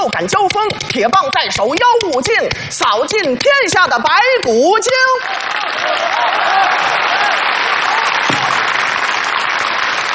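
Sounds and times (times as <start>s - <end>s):
speech: 0.0s - 7.4s
audience applause: 5.2s - 10.1s.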